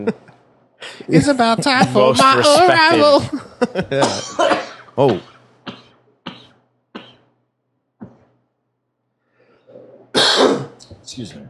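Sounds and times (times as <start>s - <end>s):
speech: 0.0s - 0.3s, 1.1s - 5.3s, 11.2s - 11.4s
people clearing their throats: 4.0s - 7.3s, 10.1s - 10.8s.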